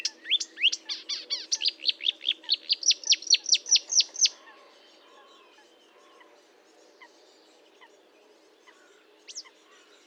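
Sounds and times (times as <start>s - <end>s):
marsh warbler song of down-slurred whistled notes: 0.0s - 4.4s.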